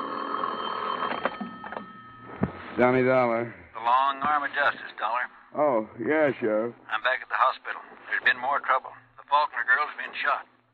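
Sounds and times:
telephone ringing beside a bed at night: 0:00.0 - 0:02.4
speech: 0:02.8 - 0:10.5.

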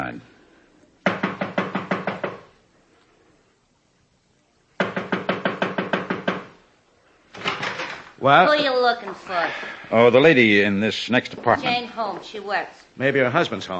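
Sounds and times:
knocking on an apartment door: 0:01.0 - 0:02.5, 0:04.8 - 0:06.6
speech: 0:08.2 - 0:13.7.

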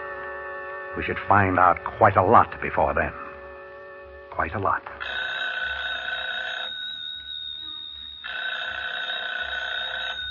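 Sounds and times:
speech: 0:01.0 - 0:03.2, 0:04.4 - 0:05.2
telephone bell ringing: 0:05.0 - 0:10.2.

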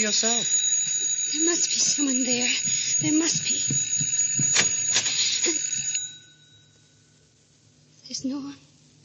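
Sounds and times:
speech: 0:00.0 - 0:00.6, 0:01.3 - 0:03.9, 0:08.1 - 0:08.7
electric doorbell ringing: 0:00.0 - 0:06.9
faint hum: 0:00.0 - 0:09.0.

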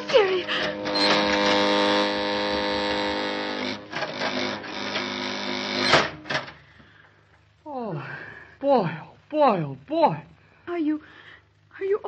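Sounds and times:
mine shaft elevator car descending: 0:00.0 - 0:06.5
speech: 0:00.1 - 0:01.1, 0:08.7 - 0:11.2, 0:11.8 - 0:12.0.

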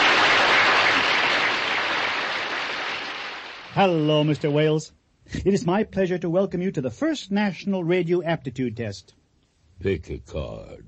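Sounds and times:
audience applauding: 0:00.0 - 0:04.4
speech: 0:03.8 - 0:09.2, 0:09.8 - 0:10.8.

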